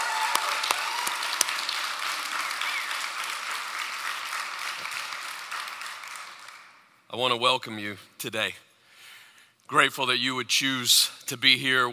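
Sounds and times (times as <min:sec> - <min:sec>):
church congregation applauding during a worship service: 0:00.0 - 0:07.0
speech: 0:07.2 - 0:08.7, 0:09.7 - 0:11.9.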